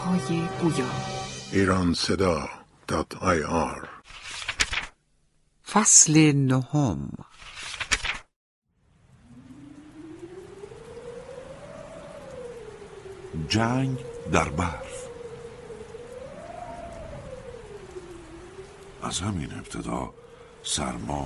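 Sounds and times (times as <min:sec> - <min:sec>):
speech: 0:00.1 - 0:04.0, 0:05.7 - 0:07.6, 0:13.4 - 0:14.9, 0:19.0 - 0:21.2
heavy rain: 0:08.8 - 0:21.2.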